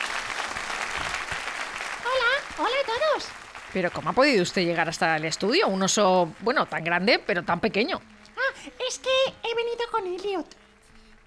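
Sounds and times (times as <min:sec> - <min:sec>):
applause in the studio: 0:00.0 - 0:07.7
speech: 0:02.6 - 0:08.1, 0:08.9 - 0:10.6.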